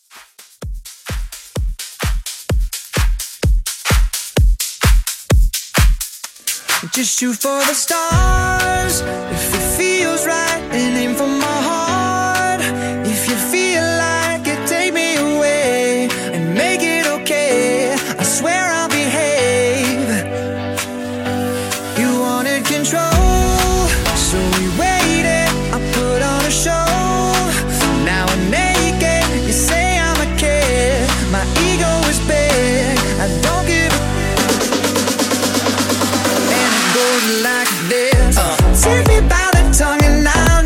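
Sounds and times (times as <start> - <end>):
house dance music mashup: 0.0 - 40.6.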